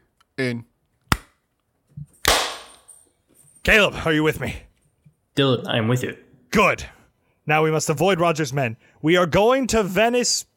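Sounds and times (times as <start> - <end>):
speech: 0.4 - 0.7, 3.6 - 4.7, 5.4 - 10.5
hand clap for recording sync: 2.2 - 2.9.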